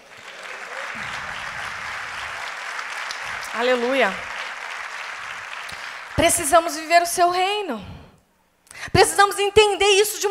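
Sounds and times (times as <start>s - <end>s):
audience applauding: 0.0s - 7.3s
speech: 3.6s - 4.3s, 6.2s - 7.9s, 8.9s - 10.2s.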